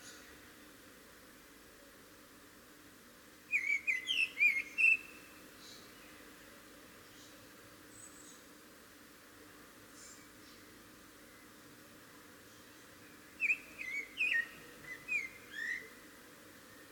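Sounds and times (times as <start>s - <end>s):
faint background hiss: 0.0s - 16.9s
common blackbird whistled calls: 3.5s - 5.2s, 13.4s - 16.0s.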